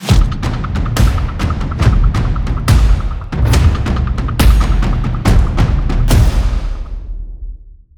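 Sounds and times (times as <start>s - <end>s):
war drums at 40 BPM: 0.0s - 7.8s.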